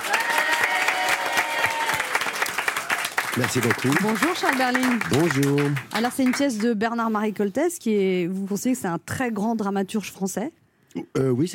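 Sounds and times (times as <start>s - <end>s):
audience applause: 0.0s - 6.7s
speech: 3.4s - 11.5s.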